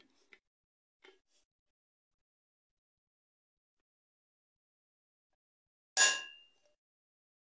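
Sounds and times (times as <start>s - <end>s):
drinking glass clinking: 6.0s - 6.5s.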